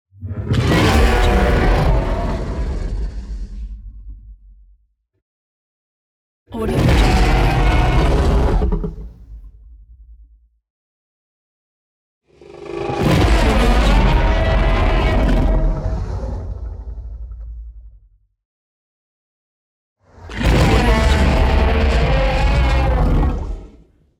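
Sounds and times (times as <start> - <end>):
T. rex: 0.2 - 4.6, 6.5 - 10.4, 12.3 - 18.1, 20.0 - 24.1.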